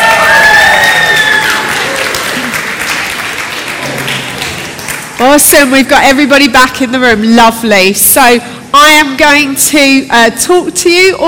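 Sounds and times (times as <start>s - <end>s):
whoops and cheers: 0.0s - 2.5s
audience round of applause: 0.0s - 5.2s
speech: 5.3s - 11.2s.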